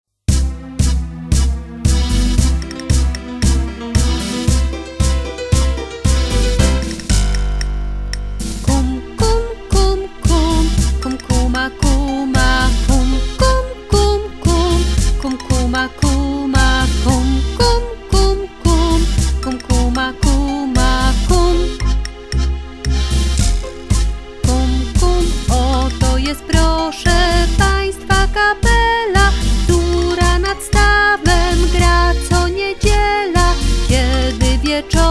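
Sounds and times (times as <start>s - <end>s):
tango music: 0.3s - 35.0s.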